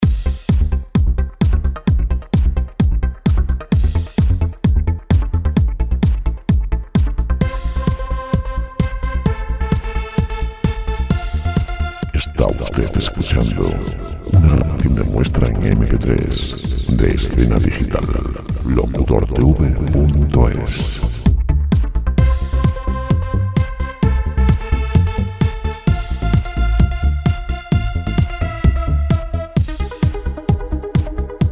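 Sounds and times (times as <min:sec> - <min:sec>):
dance music: 0:00.0 - 0:31.5.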